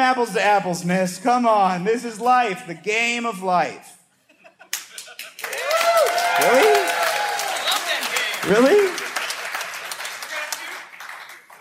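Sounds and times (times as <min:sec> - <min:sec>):
speech: 0:00.1 - 0:04.0, 0:06.4 - 0:06.9, 0:08.4 - 0:09.0
laughter: 0:04.2 - 0:05.8
audience applause: 0:05.0 - 0:11.5.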